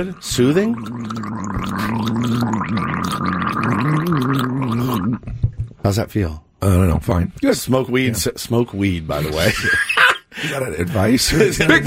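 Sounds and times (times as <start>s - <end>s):
speech: 0.0s - 4.4s, 5.0s - 11.8s
person with a sore throat gargling very hot tea: 0.0s - 5.3s.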